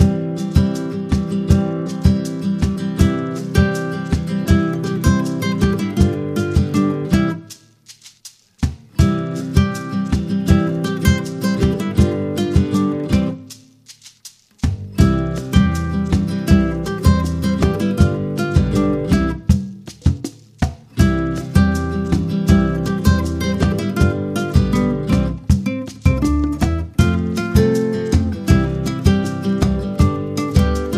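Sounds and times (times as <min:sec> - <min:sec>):
calypso dance music loop: 0:00.0 - 0:30.9.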